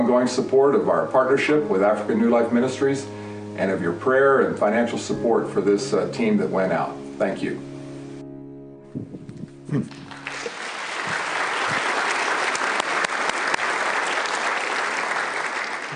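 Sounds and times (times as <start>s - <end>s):
speech: 0.1s - 7.7s, 9.7s - 10.0s
audience applause: 9.8s - 15.9s.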